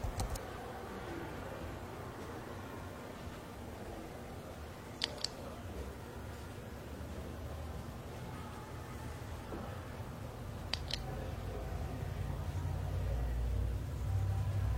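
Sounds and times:
library low murmur and hum: 0:00.0 - 0:14.7
sharp bright clicks: 0:05.0 - 0:05.4, 0:10.7 - 0:11.1.

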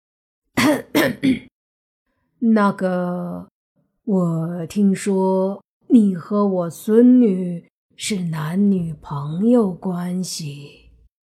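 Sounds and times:
old man coughing: 0:00.6 - 0:01.5
speech: 0:00.7 - 0:01.5, 0:02.4 - 0:03.5, 0:04.1 - 0:10.8.

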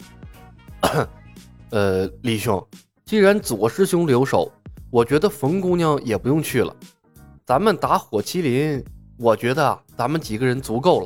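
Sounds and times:
cough: 0:00.8 - 0:01.2
speech: 0:00.8 - 0:06.9, 0:07.5 - 0:11.0.

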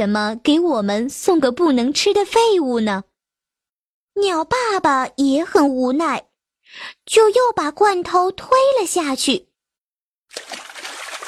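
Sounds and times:
speech: 0:00.0 - 0:03.1, 0:04.2 - 0:09.5
stream water trickling: 0:10.3 - 0:11.2.

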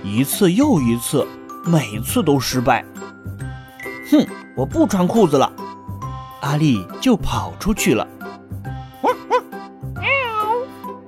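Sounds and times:
speech: 0:00.1 - 0:03.4, 0:04.1 - 0:05.6, 0:06.4 - 0:08.2
cat meowing: 0:10.0 - 0:10.8.

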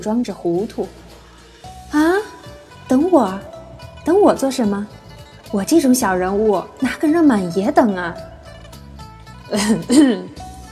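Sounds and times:
speech: 0:00.0 - 0:01.0, 0:01.9 - 0:02.1, 0:02.9 - 0:08.3, 0:09.5 - 0:10.4
person coughing: 0:09.6 - 0:10.3.

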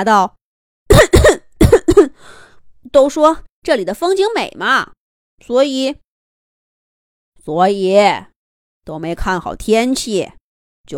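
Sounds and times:
speech: 0:00.0 - 0:00.4, 0:01.0 - 0:06.0, 0:07.4 - 0:10.9
person coughing: 0:00.9 - 0:02.2
faint breath: 0:02.2 - 0:02.6.

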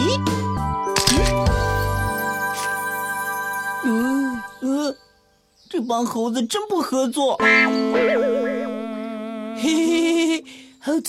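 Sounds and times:
steady music: 0:00.0 - 0:05.5, 0:07.4 - 0:10.8
camera shutter clicking taking a photo: 0:01.0 - 0:01.5
speech: 0:05.9 - 0:08.7, 0:09.6 - 0:11.0.

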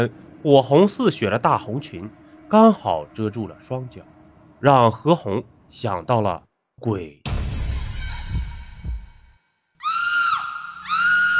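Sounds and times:
speech: 0:00.0 - 0:07.2
thudding low heartbeat-like pulses: 0:08.1 - 0:09.4
woman screaming in a haunted rental house: 0:09.8 - 0:11.3.

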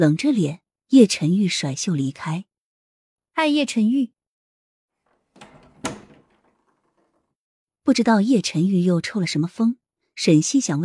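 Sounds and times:
speech: 0:00.0 - 0:02.5, 0:03.4 - 0:04.2, 0:07.9 - 0:10.8
door slamming: 0:05.1 - 0:07.3.

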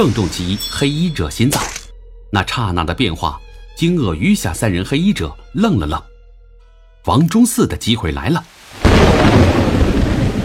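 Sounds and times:
speech: 0:00.0 - 0:06.1, 0:07.0 - 0:09.6
thunderclap: 0:08.8 - 0:10.4.

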